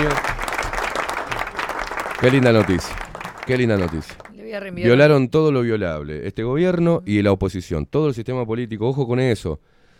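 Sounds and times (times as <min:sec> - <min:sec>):
applause: 0:00.0 - 0:04.4
speech: 0:02.2 - 0:09.8.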